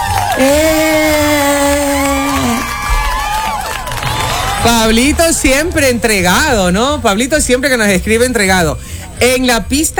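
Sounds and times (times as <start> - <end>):
played applause and cheering: 0.0 - 6.5
speech: 4.7 - 9.9.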